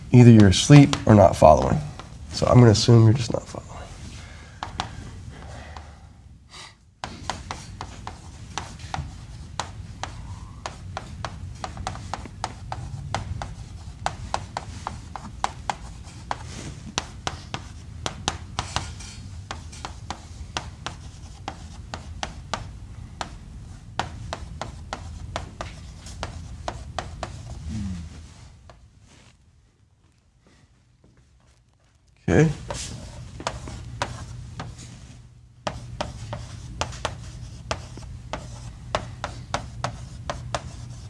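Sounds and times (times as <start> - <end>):
speech: 0.1 - 3.6
handwriting with quick scratchy pen strokes: 7.0 - 23.4, 23.9 - 27.6, 35.7 - 41.0.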